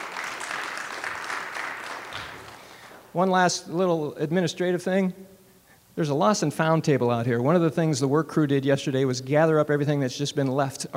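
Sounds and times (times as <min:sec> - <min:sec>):
audience applause: 0:00.0 - 0:03.0
speech: 0:03.1 - 0:05.3, 0:06.0 - 0:10.9.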